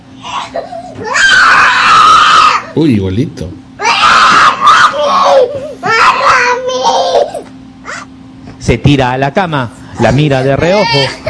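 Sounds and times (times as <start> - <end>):
two-year-old girl crying in a tantrum: 0.2 - 2.6, 3.8 - 8.1, 10.7 - 11.2
speech: 2.8 - 3.6, 8.7 - 11.2.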